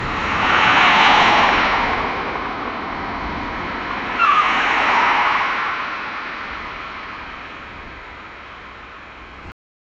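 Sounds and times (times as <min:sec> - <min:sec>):
road accident crash: 0:00.0 - 0:08.3.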